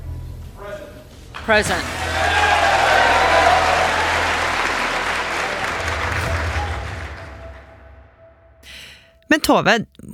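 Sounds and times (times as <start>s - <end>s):
chamber full of people applauding: 1.4s - 7.7s
speech: 1.5s - 2.4s, 9.4s - 10.1s.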